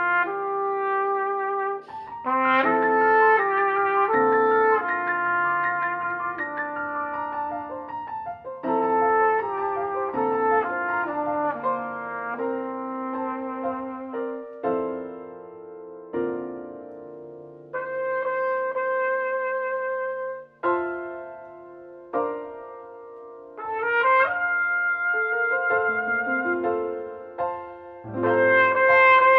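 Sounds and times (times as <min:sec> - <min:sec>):
trumpet: 0:00.0 - 0:14.6, 0:17.7 - 0:21.1, 0:23.6 - 0:27.2, 0:28.1 - 0:29.3
piano: 0:00.0 - 0:29.3.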